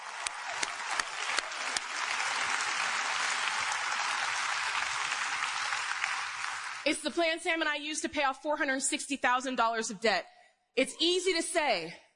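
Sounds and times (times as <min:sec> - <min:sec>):
audience applause: 0:00.0 - 0:06.9
speech: 0:06.9 - 0:12.0.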